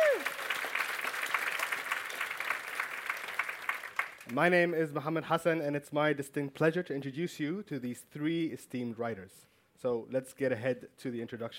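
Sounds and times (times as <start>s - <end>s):
crowd applauding: 0.0s - 4.3s
speech: 4.3s - 11.5s.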